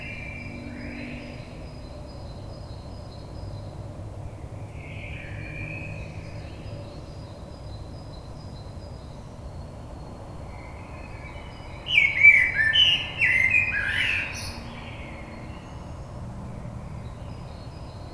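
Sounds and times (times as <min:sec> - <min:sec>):
blackbird: 0:11.4 - 0:15.1.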